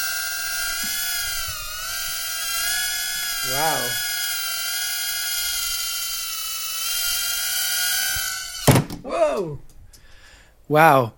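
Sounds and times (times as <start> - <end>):
small drone motors whining at a high pitch: 0.0 - 8.9
speech: 9.4 - 9.7, 10.7 - 11.1.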